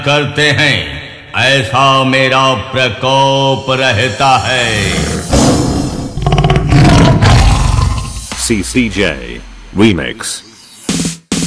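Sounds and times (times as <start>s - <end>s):
speech: 0.0s - 5.4s, 8.5s - 10.5s
lion roar: 4.8s - 8.2s.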